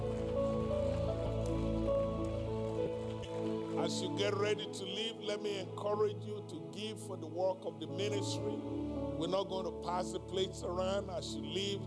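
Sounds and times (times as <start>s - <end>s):
audience applauding: 0.0s - 4.6s
sustained keyboard chords: 0.0s - 11.8s
speech: 3.8s - 11.8s.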